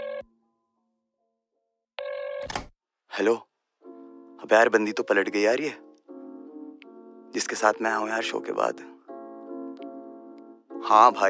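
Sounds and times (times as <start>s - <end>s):
telephone ringback tone as a call is placed: 0.0s - 0.3s, 2.0s - 2.5s
speech: 3.2s - 3.5s, 4.4s - 5.8s, 7.3s - 9.0s, 10.8s - 11.2s.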